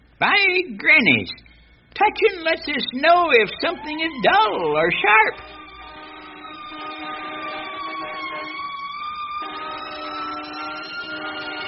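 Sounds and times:
speech: 0.2 - 5.6
fire truck siren: 3.5 - 11.6.

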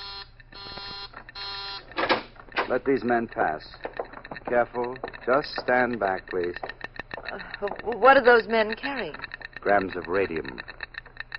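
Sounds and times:
warning buzzer: 0.0 - 1.9
speech: 2.7 - 6.7, 7.3 - 10.7.

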